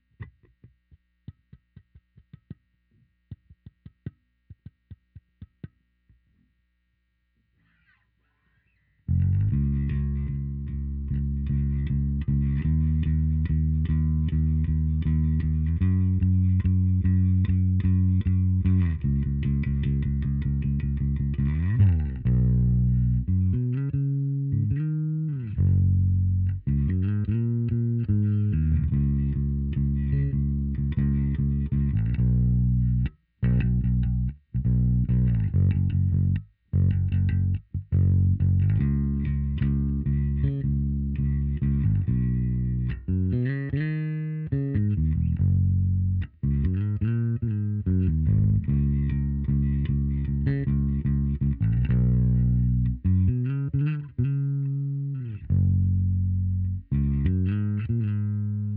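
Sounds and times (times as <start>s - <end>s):
bass: 0.0s - 58.7s.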